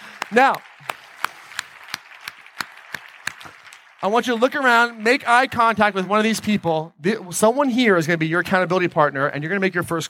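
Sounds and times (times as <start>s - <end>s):
hand claps at a motivational seminar: 0.0s - 5.6s
speech: 0.3s - 0.7s, 4.0s - 10.0s.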